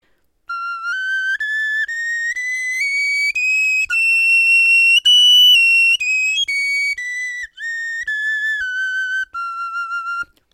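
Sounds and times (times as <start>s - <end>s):
bone flute playing a scale: 0.0s - 10.5s.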